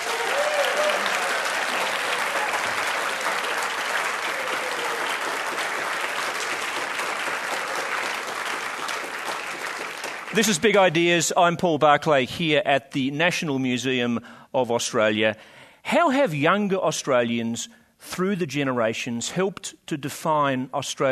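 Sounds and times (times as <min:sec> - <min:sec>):
audience applause at the National Museum of Australia: 0:00.0 - 0:11.0
speech: 0:10.4 - 0:21.1.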